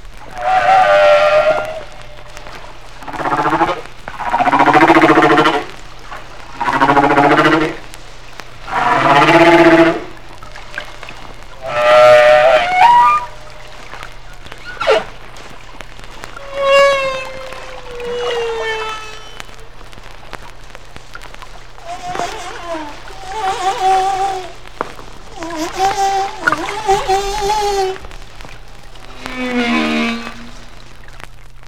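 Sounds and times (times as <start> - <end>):
faint hum: 0.0 - 31.6
Hawaiian humpback whale song: 0.3 - 5.8, 8.6 - 10.8, 11.5 - 19.6, 21.8 - 30.7.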